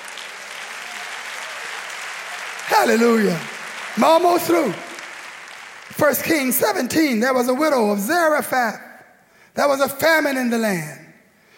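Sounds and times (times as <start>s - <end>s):
people clapping hands: 0.0s - 7.5s
speech: 2.7s - 4.9s, 6.0s - 8.8s, 9.6s - 11.0s.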